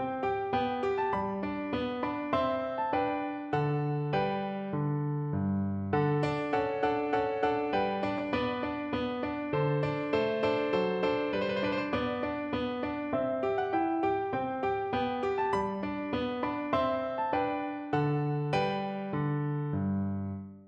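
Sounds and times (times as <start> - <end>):
piano minuet: 0.0 - 20.6.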